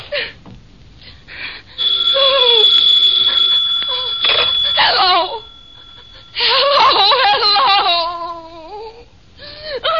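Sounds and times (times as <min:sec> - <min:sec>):
telephone ringing: 0:01.8 - 0:07.5.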